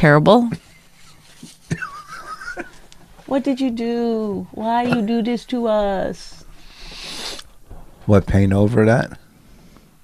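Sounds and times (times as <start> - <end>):
speech: 0.0 - 0.6, 3.3 - 6.4, 8.1 - 9.2
laughter: 1.7 - 2.9
person blowing nose: 6.7 - 7.5.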